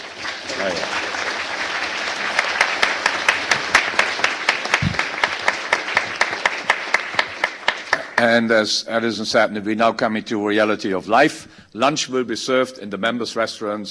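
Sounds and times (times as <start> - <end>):
audience clapping: 0.0 - 8.6
speech: 8.2 - 13.8.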